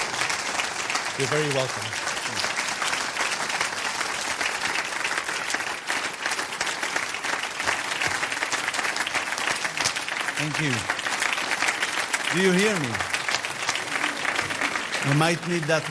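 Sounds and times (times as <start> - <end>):
audience applause welcoming a guest speaker to the stage: 0.0 - 15.9
speech: 1.2 - 2.6, 10.4 - 11.0, 12.3 - 13.1, 15.0 - 15.9.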